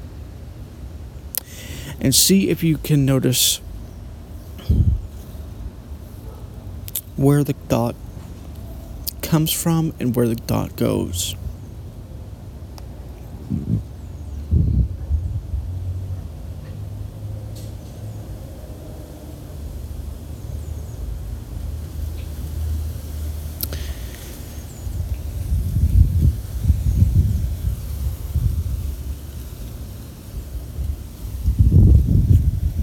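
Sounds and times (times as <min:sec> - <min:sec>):
faint steady hiss: 0:00.0 - 0:14.4, 0:19.3 - 0:32.8
wind blowing outdoors in low rumbling gusts: 0:01.5 - 0:09.0, 0:09.7 - 0:16.3, 0:24.2 - 0:32.8
speech: 0:02.0 - 0:03.7, 0:07.2 - 0:08.0, 0:09.3 - 0:11.4.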